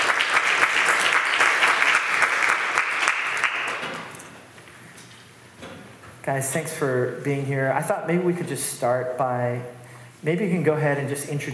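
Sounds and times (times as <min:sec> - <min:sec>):
audience applause welcoming guests onto a stage: 0:00.0 - 0:04.0
speech: 0:06.3 - 0:11.5.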